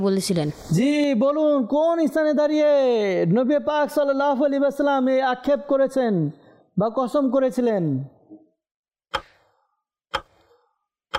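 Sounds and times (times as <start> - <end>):
speech: 0.0 - 8.2
clock ticking for a quiz timer: 9.1 - 11.1.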